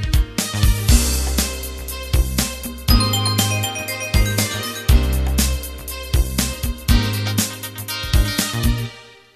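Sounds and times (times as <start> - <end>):
fusion music intro: 0.2 - 8.8.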